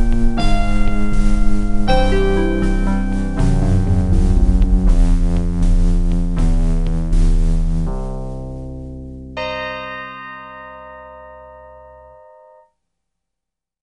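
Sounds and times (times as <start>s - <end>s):
OPL3 FM synth MIDI music: 0.0s - 9.4s.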